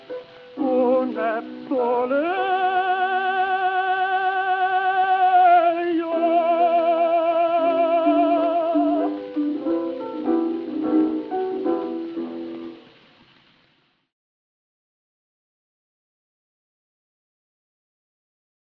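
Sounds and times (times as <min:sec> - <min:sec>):
gramophone playing: 0:00.0 - 0:12.8.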